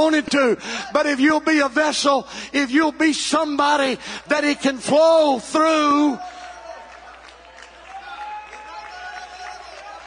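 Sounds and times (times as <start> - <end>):
speech: 0.0 - 6.4
audience clapping: 5.9 - 10.0.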